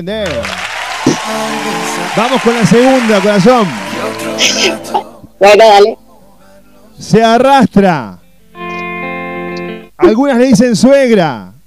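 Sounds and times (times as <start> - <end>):
speech: 0.0 - 0.7, 1.3 - 6.0, 7.0 - 8.2, 10.0 - 11.5
applause: 0.2 - 4.9.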